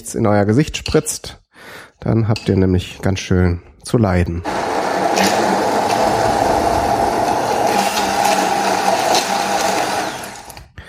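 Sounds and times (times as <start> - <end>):
speech: 0.0 - 4.6
blender puréeing: 4.5 - 10.7.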